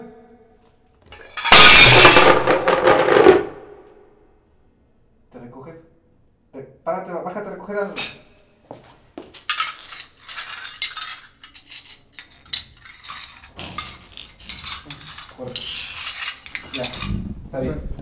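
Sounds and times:
dishes crashing and breaking: 0:01.2 - 0:03.6, 0:09.3 - 0:17.5.

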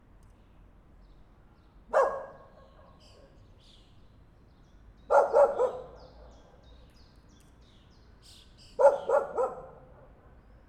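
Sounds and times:
dog barking: 0:01.9 - 0:02.9, 0:05.1 - 0:06.1, 0:08.8 - 0:10.1.

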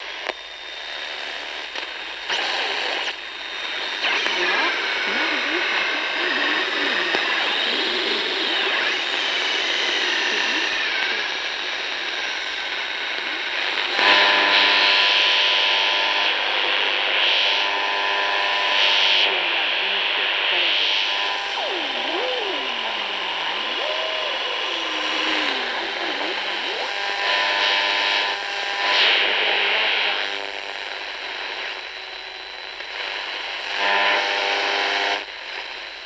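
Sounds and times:
noise: 0:00.0 - 0:36.0.

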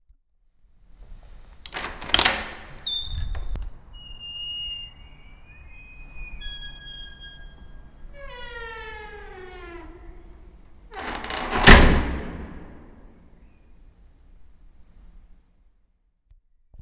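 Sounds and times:
door squeaking: 0:01.4 - 0:13.7.

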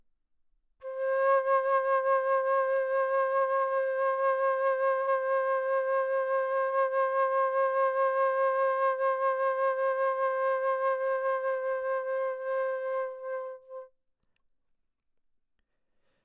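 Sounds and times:
flute note: 0:00.8 - 0:13.9.

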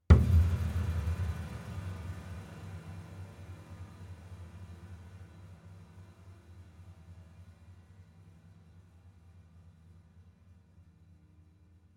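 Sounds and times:
piano hits: 0:00.1 - 0:01.6.

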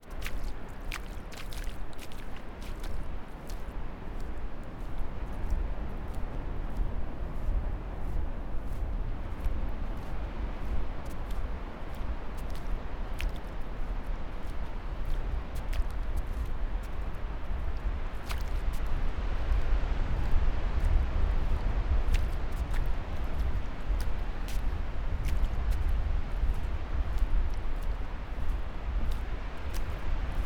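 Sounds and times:
barefoot steps on a sandy beach: 0:00.0 - 0:30.4.

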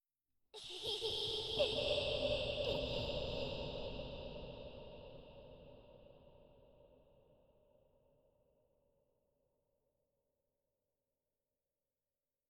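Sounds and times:
creepy child giggle with reverb: 0:00.6 - 0:03.8.

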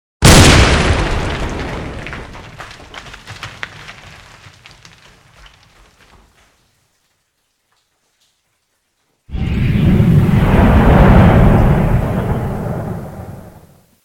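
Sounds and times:
blast: 0:00.2 - 0:02.6, 0:09.3 - 0:13.9.

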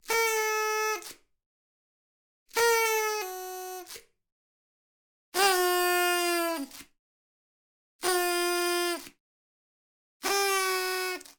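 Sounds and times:
party horn: 0:00.0 - 0:01.0, 0:02.5 - 0:04.0, 0:05.4 - 0:06.8, 0:08.0 - 0:09.1, 0:10.2 - 0:11.3.

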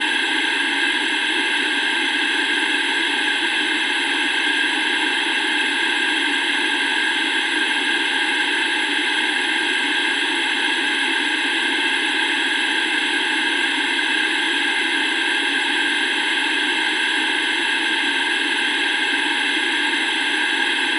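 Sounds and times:
static from an old cheap portable analogue television: 0:00.0 - 0:20.9.

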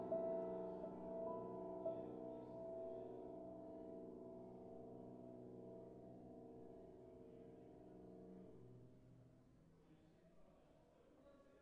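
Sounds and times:
piano improvisation: 0:00.0 - 0:06.6.

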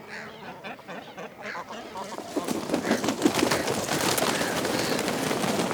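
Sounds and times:
cormorants croaking at a nest: 0:00.0 - 0:05.6.

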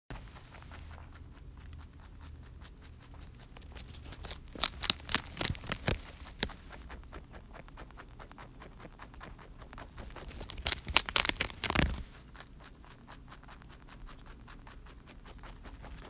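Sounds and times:
chewing: 0:00.1 - 0:16.0.

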